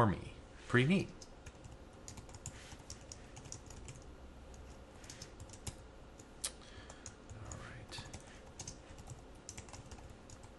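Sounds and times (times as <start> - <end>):
speech: 0.0 - 1.2
typing on a computer keyboard: 1.2 - 5.8, 6.8 - 10.5.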